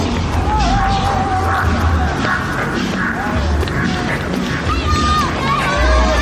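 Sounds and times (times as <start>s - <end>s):
roadside spectators cheering marathon runners: 0.0s - 6.1s
spectators shouting and yelling: 0.2s - 2.2s, 4.6s - 6.1s.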